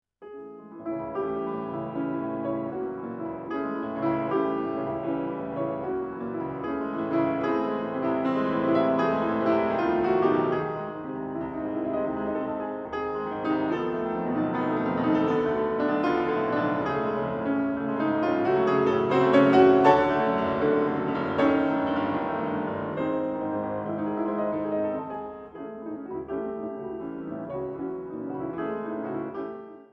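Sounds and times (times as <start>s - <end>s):
piano etude in C sharp minor: 0.2s - 29.9s.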